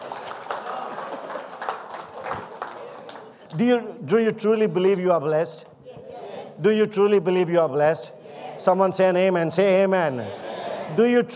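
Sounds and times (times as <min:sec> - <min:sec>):
audience clapping: 0:00.0 - 0:03.8
speech: 0:03.5 - 0:05.7, 0:06.6 - 0:11.3.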